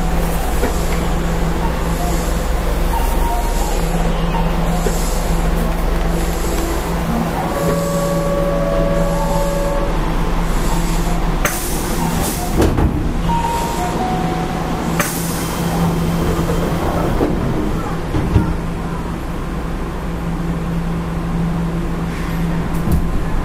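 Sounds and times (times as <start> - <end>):
thin whining tones: 0.0 - 12.5
Keihan Electric Railway 5000 series train running on the Keihan main line: 0.0 - 23.4.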